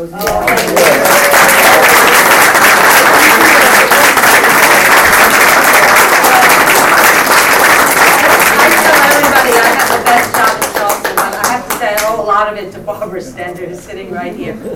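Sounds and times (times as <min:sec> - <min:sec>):
audience applause: 0:00.2 - 0:11.6.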